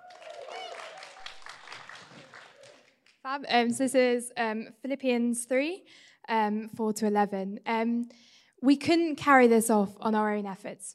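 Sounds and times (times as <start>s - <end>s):
audience cheering: 0.0s - 3.0s
speech: 3.3s - 10.9s.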